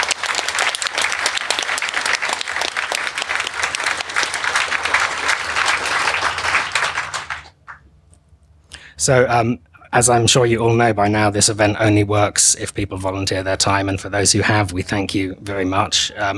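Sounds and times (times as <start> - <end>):
large audience applause for sponsors: 0.0 - 7.8
speech: 9.0 - 16.3.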